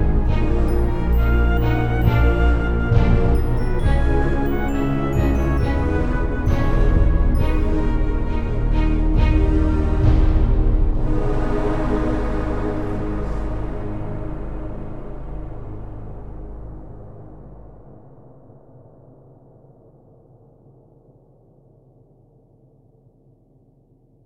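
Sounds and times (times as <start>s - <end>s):
flute melody: 0.0s - 17.6s.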